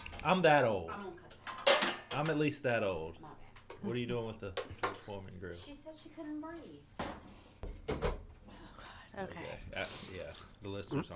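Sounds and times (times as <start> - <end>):
speech: 0.2 - 1.2, 2.2 - 8.0, 9.2 - 11.1
wooden door opening with knocks and clunks: 7.8 - 8.2.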